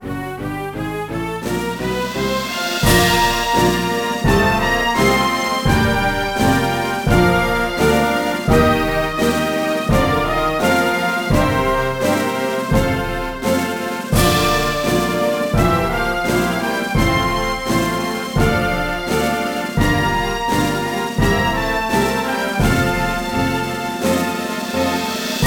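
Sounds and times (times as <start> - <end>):
orchestral background music: 0.0 - 25.4.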